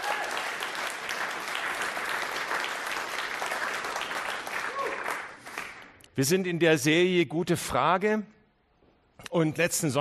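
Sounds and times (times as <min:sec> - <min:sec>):
audience applause: 0:00.0 - 0:05.9
speech: 0:06.2 - 0:08.4, 0:09.3 - 0:09.9.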